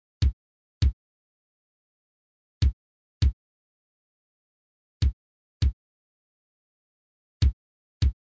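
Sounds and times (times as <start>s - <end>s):
bumbo bass drum beat: 5.0s - 5.8s, 7.4s - 8.2s.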